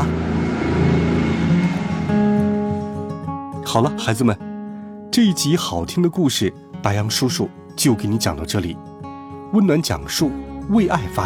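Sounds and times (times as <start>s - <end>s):
car driving off: 0.0s - 3.4s
speech: 3.7s - 4.5s, 5.2s - 8.9s, 9.5s - 11.2s.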